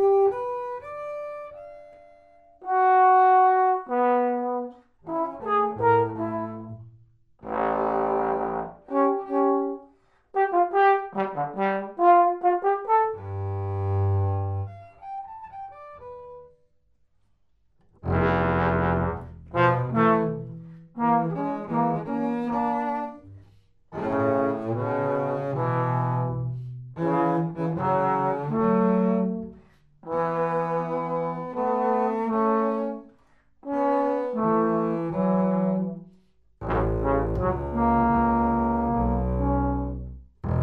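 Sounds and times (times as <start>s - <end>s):
trombone duet: 2.6s - 6.8s, 7.4s - 9.8s, 10.4s - 14.6s, 18.0s - 23.2s, 23.9s - 33.0s, 33.6s - 36.0s, 36.6s - 40.6s.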